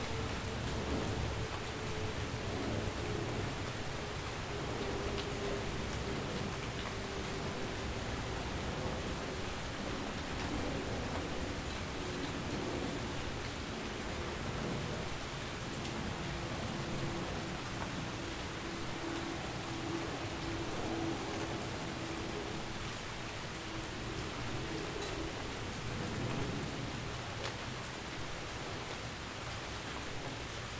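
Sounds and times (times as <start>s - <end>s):
thunderstorm: 0.0s - 27.8s
rain: 0.0s - 30.7s.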